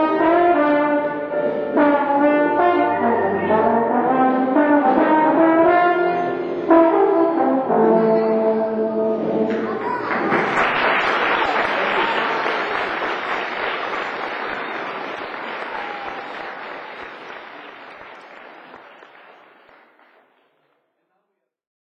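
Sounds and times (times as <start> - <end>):
trombone: 0.0 - 9.5
laughter: 9.5 - 19.1.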